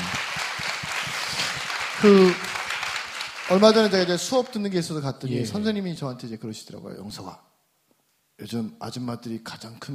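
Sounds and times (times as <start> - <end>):
small group applauding: 0.0 - 4.8
speech: 2.0 - 2.5, 3.5 - 7.5, 8.4 - 9.9.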